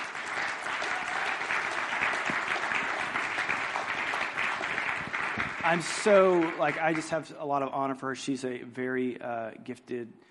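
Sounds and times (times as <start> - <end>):
audience applause welcoming a speaker onto a stage: 0.0 - 7.3
speech: 5.6 - 10.2.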